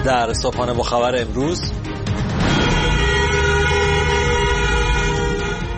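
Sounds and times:
speech: 0.1 - 1.9
continuous car horns honking in Iran protests: 2.3 - 5.7.

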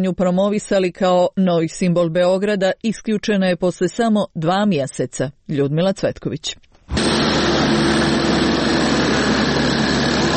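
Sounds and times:
speech: 0.0 - 7.0
excavators and drills at construction site: 6.9 - 10.3.

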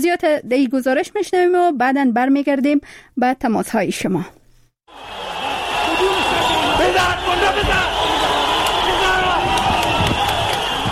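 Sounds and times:
speech: 0.0 - 5.2
sharp yells: 4.9 - 10.9
spectators cheering in a sports stadium: 4.9 - 10.9.

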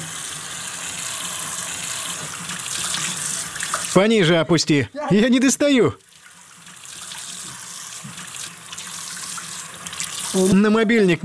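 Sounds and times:
running tap water splashing: 2.1 - 4.0, 6.0 - 10.4
speech: 4.0 - 6.1, 10.4 - 11.2.

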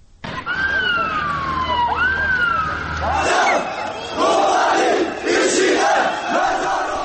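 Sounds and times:
siren wailing in rising and falling sweeps: 0.4 - 4.2
protest crowd in Istanbul chanting over Kobani: 3.0 - 7.0.

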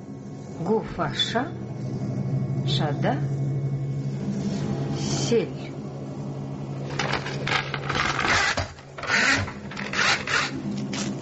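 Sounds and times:
low sustained tonal drone: 0.0 - 11.2
speech: 0.6 - 2.0, 2.7 - 3.4, 5.3 - 5.8
paper torn as books are ripped apart: 7.0 - 11.2.

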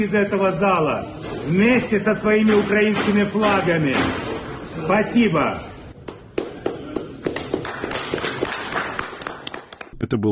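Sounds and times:
speech: 0.0 - 5.7
applause by the Russian delegation: 6.4 - 10.0.

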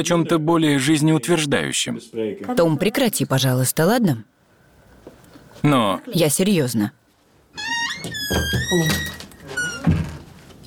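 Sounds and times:
speech: 0.0 - 4.3, 5.6 - 7.0, 7.6 - 9.1
office door closing: 7.5 - 10.5.

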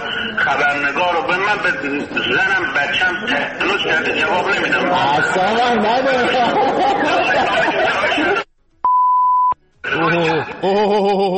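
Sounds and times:
laughter: 0.0 - 8.5, 9.9 - 11.3
speech: 0.5 - 8.4, 10.2 - 11.3
steady electronic horn beep: 8.8 - 9.6.

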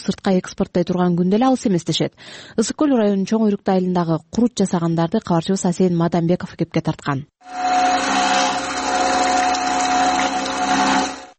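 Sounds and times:
speech: 0.0 - 7.8
cream separator processing fresh cow's milk in a village household: 7.5 - 11.3.

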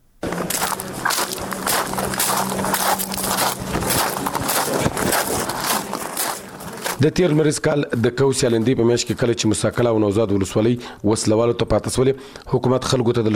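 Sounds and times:
footsteps crunching over sand: 0.2 - 10.0
speech: 7.0 - 13.3.

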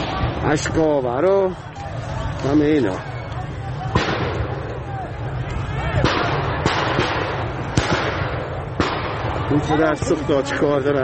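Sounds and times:
crowd hubbub with indistinct shouting voices: 0.0 - 11.0
speech: 0.4 - 1.7, 2.4 - 3.1, 9.5 - 11.0
gunshots fired at protesters: 3.9 - 4.9, 6.0 - 10.3.

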